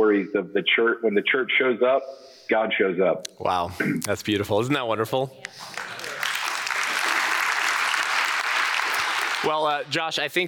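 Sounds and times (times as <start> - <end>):
speech: 0.0 - 6.0, 9.4 - 10.4
audience applause: 5.6 - 10.0.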